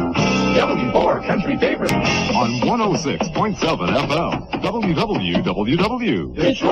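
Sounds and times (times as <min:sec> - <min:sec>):
country radio top of the hour station ID: 0:00.2 - 0:06.5.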